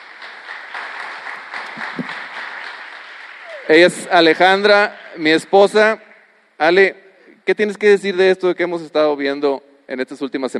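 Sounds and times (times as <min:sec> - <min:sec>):
audience applause: 0:00.0 - 0:05.1
speech: 0:03.7 - 0:06.0, 0:06.6 - 0:10.5.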